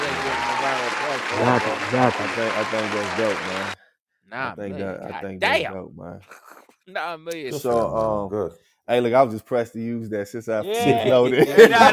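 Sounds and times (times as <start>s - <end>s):
quick round of applause: 0.0s - 3.8s
laughter: 1.2s - 3.7s, 10.7s - 11.9s
speech: 1.2s - 11.9s.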